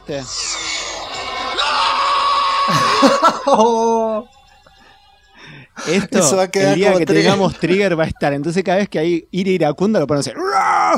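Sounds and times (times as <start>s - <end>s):
speech: 0.1s - 0.5s, 2.7s - 4.3s, 5.8s - 10.9s
stock movie scream sound effect: 0.1s - 4.2s, 10.4s - 10.9s
laughter: 2.7s - 4.2s, 6.8s - 8.3s.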